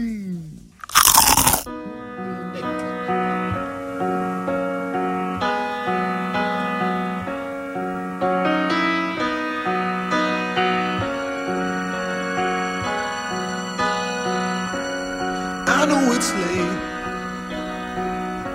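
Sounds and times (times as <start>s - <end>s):
crisp crunch of biting into fried cockroaches: 0.8s - 1.7s
music: 1.4s - 18.5s.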